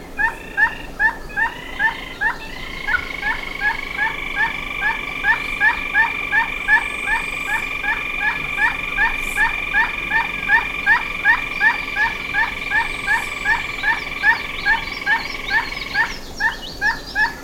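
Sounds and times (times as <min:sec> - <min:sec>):
bird calls: 0:00.2 - 0:17.4
steady whistled tone: 0:03.0 - 0:16.1.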